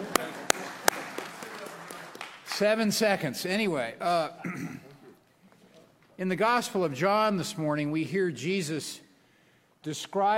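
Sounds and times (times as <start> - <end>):
hands clapping: 0.0 - 2.7
speech: 2.6 - 4.9, 6.2 - 9.0, 9.8 - 10.3.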